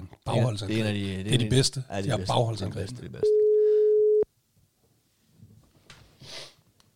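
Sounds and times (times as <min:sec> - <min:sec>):
speech: 0:00.3 - 0:03.4
phone call ringing tone, unanswered: 0:03.2 - 0:04.2.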